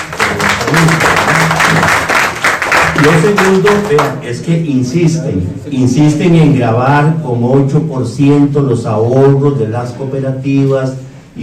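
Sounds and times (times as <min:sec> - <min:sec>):
crowd applauding: 0:00.0 - 0:04.2
speech: 0:03.0 - 0:11.4.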